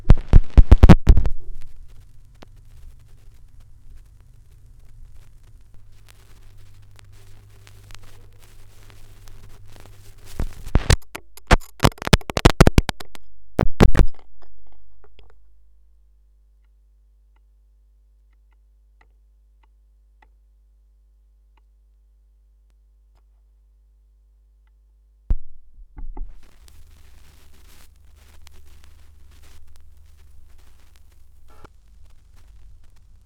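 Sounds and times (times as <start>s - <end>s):
vinyl record noise: 0.0s - 16.1s, 25.3s - 33.2s.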